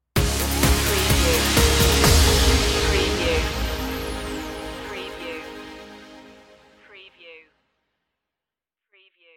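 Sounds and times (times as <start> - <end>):
music stinger: 0.2 - 6.8.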